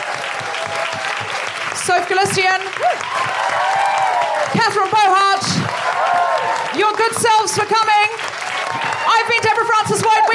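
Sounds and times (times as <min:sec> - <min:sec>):
audience applause: 0:00.0 - 0:10.3
speech: 0:01.8 - 0:03.8, 0:09.0 - 0:10.3.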